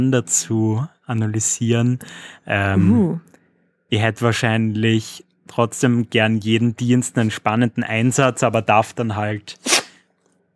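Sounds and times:
speech: 0.0s - 9.8s
sneeze: 9.6s - 10.0s.

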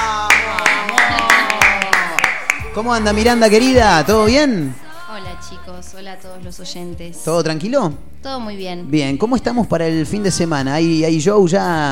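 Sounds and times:
audience applause: 0.0s - 2.7s
speech: 2.8s - 11.9s.

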